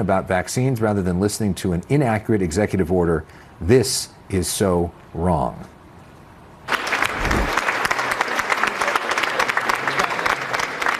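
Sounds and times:
speech: 0.0 - 5.8
supporters applauding at the Justice Department: 6.7 - 10.9.

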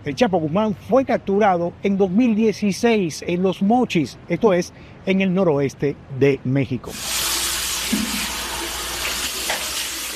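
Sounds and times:
speech: 0.0 - 7.2, 7.9 - 8.2
tap water running into a sink as a man washes his face and hair: 7.0 - 10.1.

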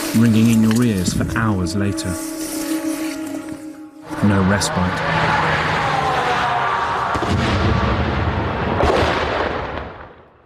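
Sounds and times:
speech: 0.1 - 2.4, 4.2 - 5.3
drone strike explosion: 5.5 - 10.4.

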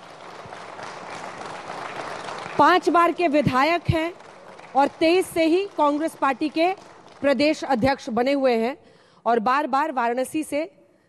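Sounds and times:
applause welcoming a guest on a Hindi TV news debate show: 0.0 - 7.4
speech: 2.6 - 10.8.

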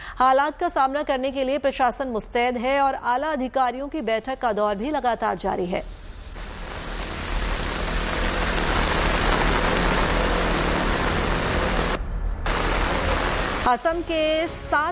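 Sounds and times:
speech: 0.2 - 6.0, 13.7 - 14.8
heavy rain: 6.1 - 13.7.

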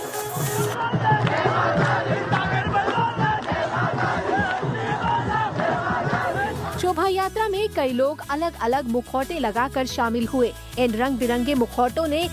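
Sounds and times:
procession crowd of young voices chanting religious slogans: 0.3 - 6.9
speech: 7.0 - 12.3.

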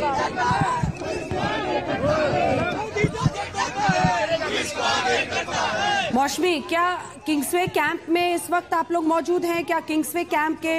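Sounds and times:
crowd clapping along at a political protest: 0.0 - 5.7
crowd chanting slogans at a political protest: 0.0 - 8.1
speech: 6.2 - 10.7.

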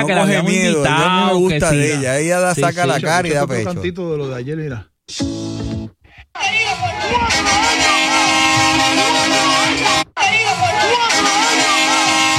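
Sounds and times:
speech: 0.0 - 5.6
large crowd chanting four more years in unison: 6.4 - 12.3.

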